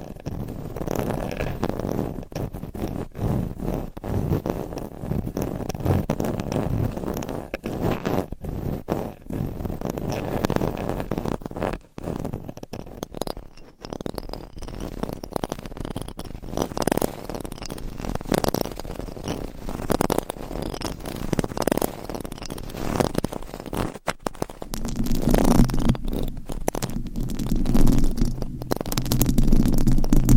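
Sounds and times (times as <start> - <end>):
microphone scratching: 0.0 - 30.3.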